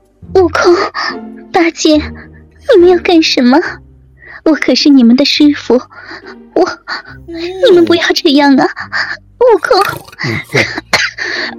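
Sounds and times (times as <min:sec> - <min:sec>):
speech: 0:00.2 - 0:03.8, 0:04.4 - 0:11.5
person coughing: 0:09.7 - 0:11.2.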